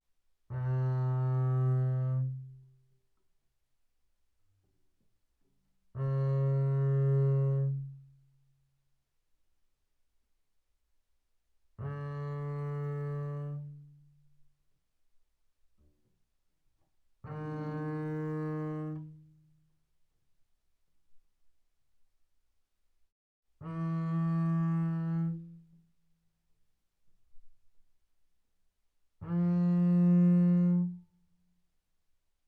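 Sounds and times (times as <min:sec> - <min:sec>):
double bass bowed fortissimo on the A string: 0:00.5 - 0:02.8, 0:05.9 - 0:08.2, 0:11.8 - 0:14.2, 0:17.2 - 0:19.5, 0:23.6 - 0:25.8, 0:29.2 - 0:31.2.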